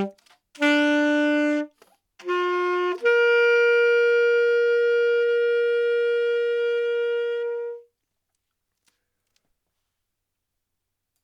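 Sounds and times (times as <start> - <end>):
saxophone playing: 0.0 - 7.9.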